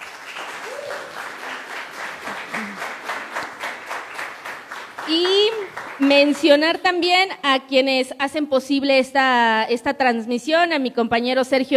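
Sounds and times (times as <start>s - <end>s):
audience applause: 0.0s - 6.4s
speech: 5.1s - 11.7s.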